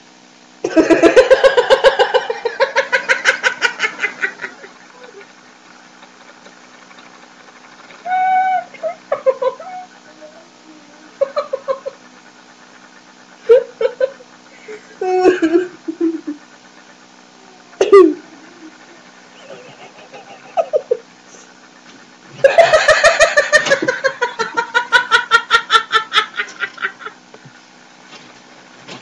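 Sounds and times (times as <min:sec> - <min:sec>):
girl laughing: 0:00.6 - 0:05.4, 0:08.1 - 0:12.1, 0:13.4 - 0:16.4, 0:17.7 - 0:21.1, 0:22.4 - 0:27.2.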